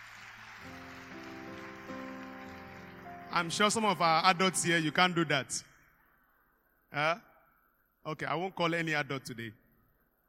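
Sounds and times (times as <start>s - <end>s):
audience clapping: 0.0s - 4.1s
speech: 3.4s - 5.7s, 6.9s - 7.3s, 8.0s - 9.6s.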